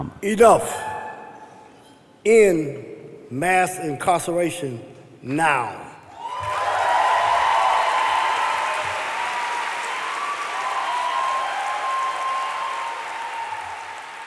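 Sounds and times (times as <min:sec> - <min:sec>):
speech: 0:00.0 - 0:00.9, 0:02.2 - 0:05.8
audience applause at the Webby Awards ceremony: 0:06.2 - 0:14.2.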